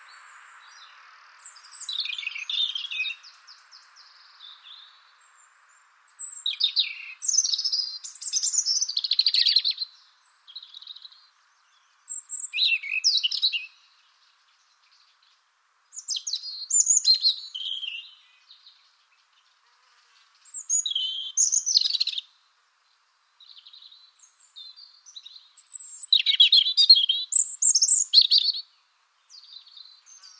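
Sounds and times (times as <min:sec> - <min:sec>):
European robin song: 0:00.0 - 0:30.3
steady low background hiss: 0:00.0 - 0:30.3.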